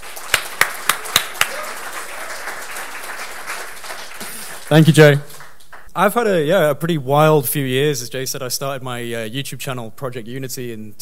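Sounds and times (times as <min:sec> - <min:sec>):
sharp hand claps of an audience welcoming a speaker at a desert event: 0:00.0 - 0:05.9
speech: 0:04.7 - 0:05.3, 0:06.0 - 0:11.0.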